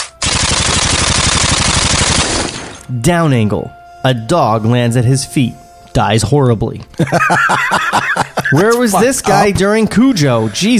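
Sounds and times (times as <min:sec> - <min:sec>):
Uzi submachine gun burst: 0:00.0 - 0:02.8
speech: 0:02.9 - 0:10.7
laughter: 0:06.9 - 0:10.7.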